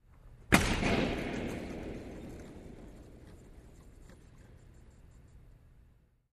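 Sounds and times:
hockey body hit with reverb: 0:00.5 - 0:03.9.

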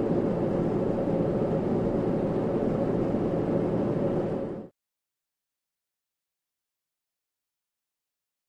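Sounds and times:
large Boeing 727 jet engine roar heard from the interior: 0:00.0 - 0:04.7.

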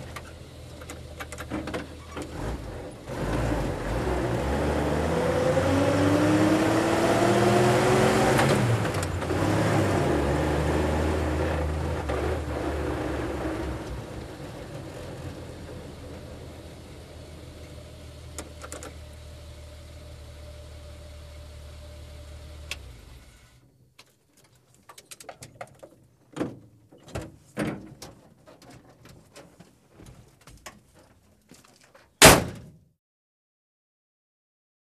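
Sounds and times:
Dodge Power Wagon fire truck gear shifts: 0:00.0 - 0:23.5
Dodge Power Wagon fire truck engine starting and driving, interior: 0:00.0 - 0:23.6.

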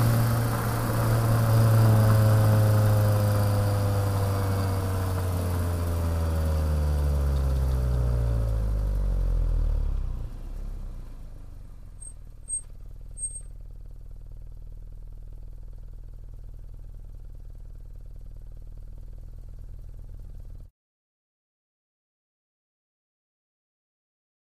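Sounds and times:
sports car engine accelerating to high rpm: 0:00.0 - 0:12.6
light sports car brake squeak: 0:11.8 - 0:13.6.

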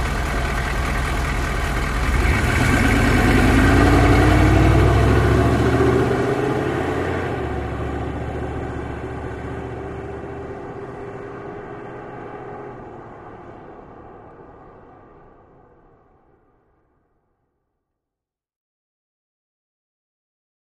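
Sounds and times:
Humvee approaching, idling and driving away: 0:00.0 - 0:16.3.

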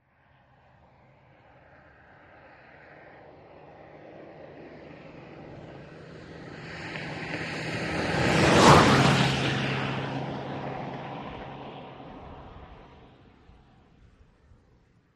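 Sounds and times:
Austin Montego car passing fast outdoors: 0:04.4 - 0:13.9.

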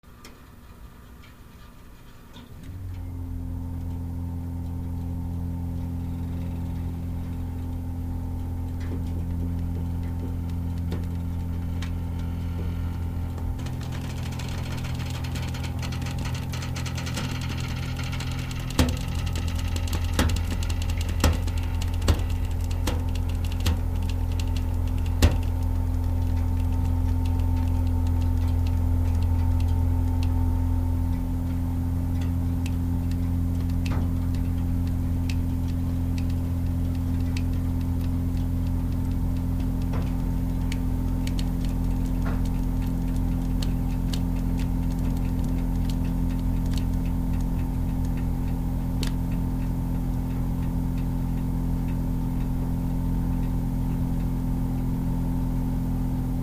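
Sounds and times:
hot water heater hissing: 0:00.1 - 0:56.4
hot water heater pipes creaking: 0:12.9 - 0:27.1
hot water heater timer winding up: 0:13.6 - 0:29.6.

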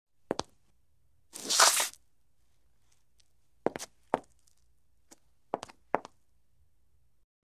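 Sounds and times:
footsteps on concrete: 0:00.3 - 0:00.5, 0:01.4 - 0:02.0, 0:03.6 - 0:06.2.

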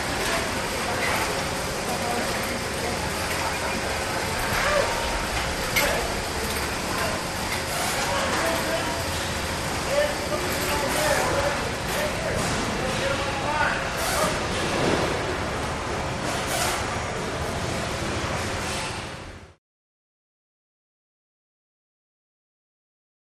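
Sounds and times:
medium to distant voices on an assembly line: 0:00.0 - 0:16.2
assembly line machinery hum: 0:00.0 - 0:19.6.

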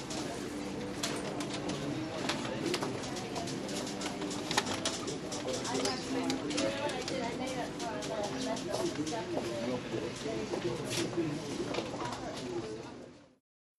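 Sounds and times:
busy crowd in a drug store: 0:00.0 - 0:13.4
faint music in a drug store: 0:00.0 - 0:13.4.

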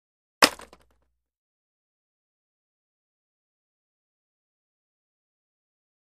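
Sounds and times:
single roller blade dropped: 0:00.4 - 0:00.8.

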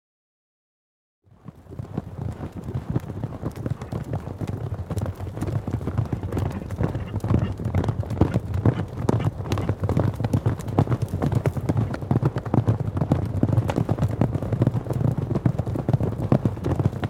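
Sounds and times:
horse galloping: 0:01.3 - 0:17.0.

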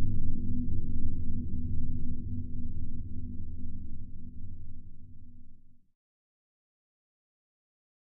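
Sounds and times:
deep space drone bed: 0:00.0 - 0:05.6.

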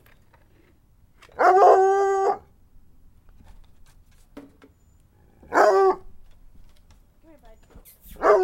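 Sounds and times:
dog howling: 0:01.4 - 0:02.5.

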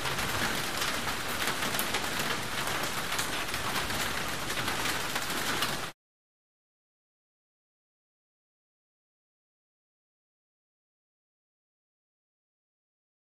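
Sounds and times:
medium heavy tropical rainforest rain on sheet metal roof, interior: 0:00.0 - 0:06.0.

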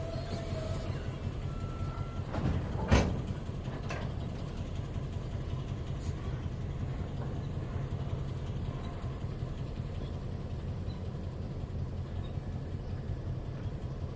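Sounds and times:
train squeaking: 0:00.0 - 0:03.2, 0:07.2 - 0:11.4, 0:12.0 - 0:14.0
train moving slowly: 0:00.0 - 0:14.1.

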